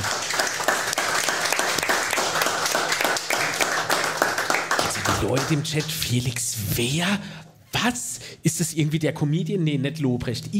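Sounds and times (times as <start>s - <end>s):
audience applause: 0.0s - 5.7s
speech: 5.2s - 10.5s.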